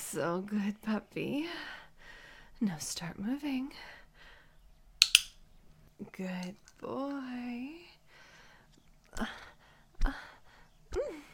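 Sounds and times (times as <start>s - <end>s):
speech: 0.1s - 1.7s, 2.6s - 4.0s, 6.0s - 7.9s, 9.1s - 10.2s
training clicker clicks: 5.0s - 5.4s.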